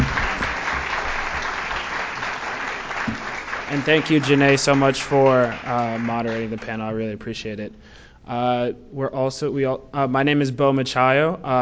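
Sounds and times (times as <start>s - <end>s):
applause for panelists: 0.0s - 6.8s
speech: 3.7s - 11.6s.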